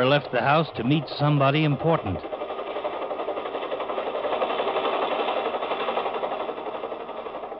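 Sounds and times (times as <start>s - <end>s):
speech: 0.0s - 2.4s
helicopter approaching at night: 0.0s - 7.5s.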